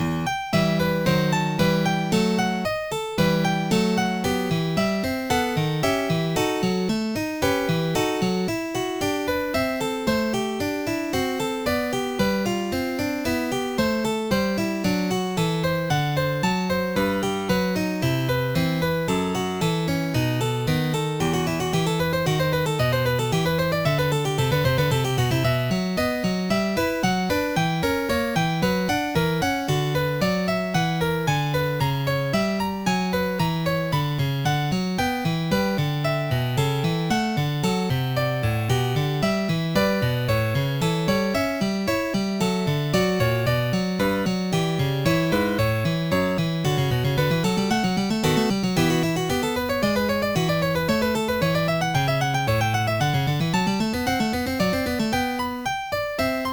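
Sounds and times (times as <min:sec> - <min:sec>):
prelude: 0:00.0 - 0:56.5.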